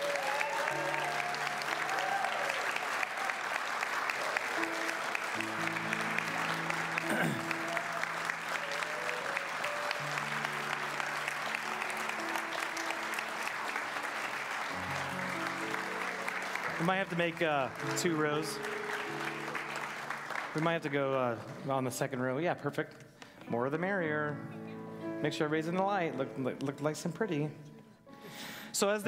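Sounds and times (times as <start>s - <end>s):
large audience applause: 0.0s - 21.7s
speech: 16.9s - 18.8s, 20.6s - 24.6s, 25.2s - 27.7s, 28.8s - 29.0s.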